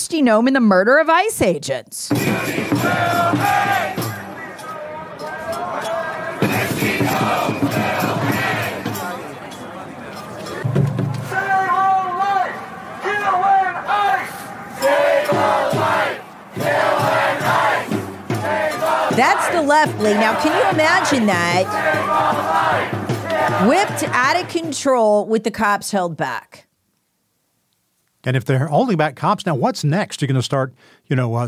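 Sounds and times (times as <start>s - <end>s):
speech: 0.1s - 4.0s, 19.2s - 26.7s, 28.2s - 31.4s
crowd of thousands screaming and chanting: 2.1s - 24.6s.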